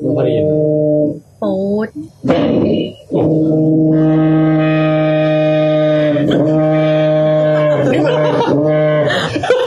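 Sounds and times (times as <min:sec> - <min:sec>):
speech: 0:00.2 - 0:03.4
fish call, low foghorn-like drone: 0:03.2 - 0:09.2
laughter: 0:07.4 - 0:09.6.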